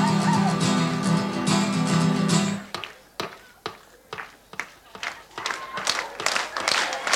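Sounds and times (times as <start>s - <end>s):
crowd noise: 0.0s - 7.1s
audience clapping: 2.7s - 3.5s, 4.2s - 7.1s.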